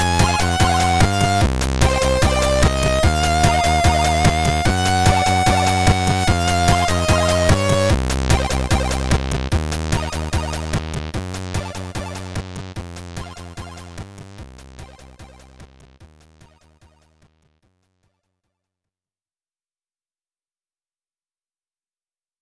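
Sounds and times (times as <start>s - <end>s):
SID sound chip sounds: 0.0s - 10.9s, 11.5s - 12.5s, 13.1s - 14.0s, 14.8s - 15.6s.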